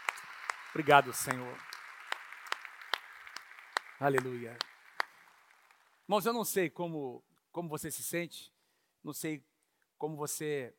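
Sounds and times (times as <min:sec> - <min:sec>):
audience applauding: 0:00.0 - 0:06.1
speech: 0:00.7 - 0:01.7, 0:04.0 - 0:04.7, 0:06.1 - 0:10.7.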